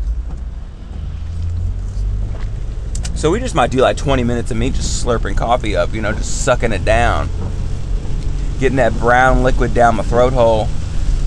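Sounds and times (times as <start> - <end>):
car windshield wipers going: 0.0 - 11.2
car in pouring rain: 2.5 - 11.2
speech: 3.2 - 7.6, 8.6 - 10.8.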